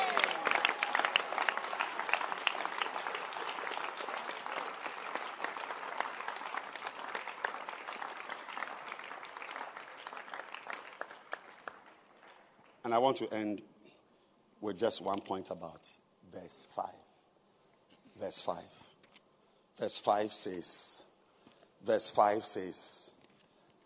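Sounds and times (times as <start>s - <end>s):
crowd hand clapping: 0.0s - 12.8s
speech: 12.9s - 13.7s, 14.6s - 17.0s, 18.2s - 18.8s, 19.8s - 21.1s, 21.8s - 23.0s.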